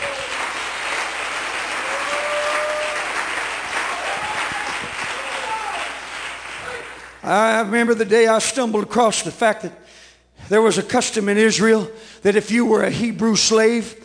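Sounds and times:
audience clapping hands: 0.0s - 7.2s
speech: 7.3s - 14.0s.

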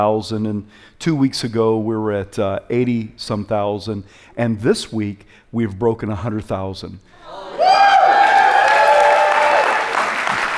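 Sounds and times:
speech: 0.0s - 7.9s
loud sustained whoop: 7.2s - 10.2s
audience shouting and cheering: 7.2s - 10.5s.

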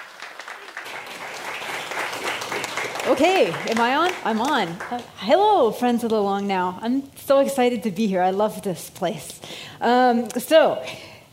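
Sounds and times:
audience applause: 0.0s - 5.2s
speech: 3.1s - 11.1s.

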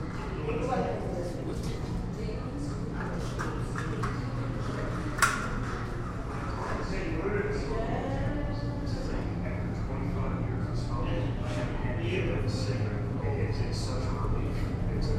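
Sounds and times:
low laundromat machine hum: 0.0s - 15.1s
television voices in a laundromat in Barton Heights: 0.0s - 15.1s.

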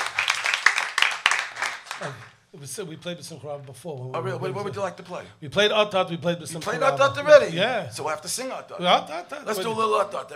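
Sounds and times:
crowd applause: 0.0s - 2.3s
speech: 2.0s - 10.3s.

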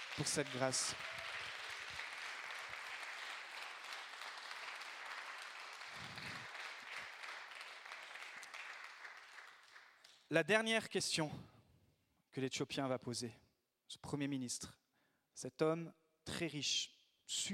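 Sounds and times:
audience applause: 0.0s - 10.1s
speech: 0.2s - 1.3s, 10.3s - 11.5s, 12.4s - 14.8s, 15.4s - 17.5s.

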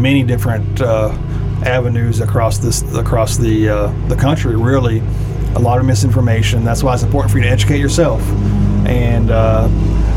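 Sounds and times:
lawnmower engine droning past: 0.0s - 10.1s
speech: 0.0s - 10.1s.

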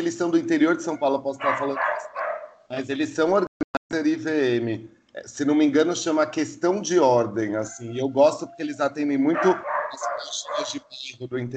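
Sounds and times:
speech: 0.0s - 11.5s
dog barks: 0.9s - 2.6s, 9.3s - 10.9s.

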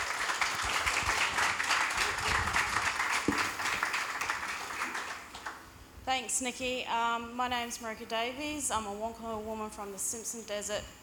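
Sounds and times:
audience applause welcoming artists at an exhibition event: 0.0s - 5.6s
speech: 6.1s - 11.0s.

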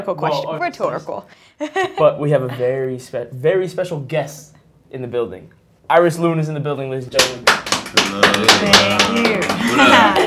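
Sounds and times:
speech: 0.0s - 10.2s
applause: 7.2s - 10.2s.

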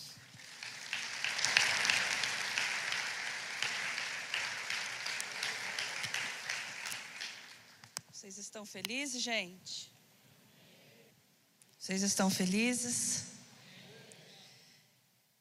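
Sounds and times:
audience applause: 0.0s - 7.9s
speech: 8.3s - 9.9s, 11.9s - 13.2s.

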